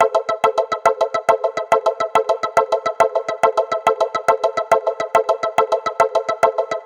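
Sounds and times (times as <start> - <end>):
music loop at 140 BPM in A: 0.0 - 6.8.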